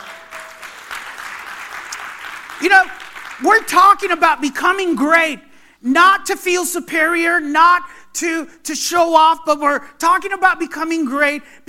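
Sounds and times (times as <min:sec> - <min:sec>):
audience applause: 0:00.0 - 0:03.5
speech: 0:02.6 - 0:11.6.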